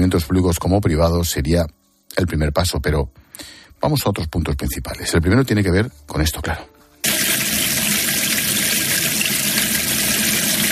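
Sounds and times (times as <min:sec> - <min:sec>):
speech: 0:00.0 - 0:06.7
water running from a tap: 0:07.0 - 0:10.7.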